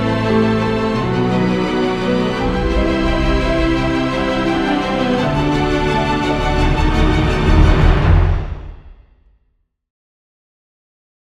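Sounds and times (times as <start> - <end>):
emotional background music: 0.0 - 8.9.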